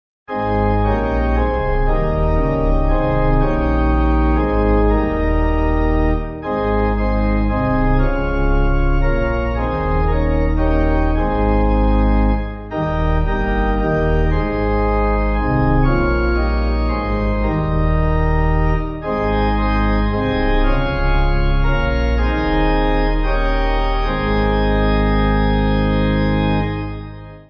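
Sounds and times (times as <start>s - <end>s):
church pipe organ backing music: 0.3s - 27.4s.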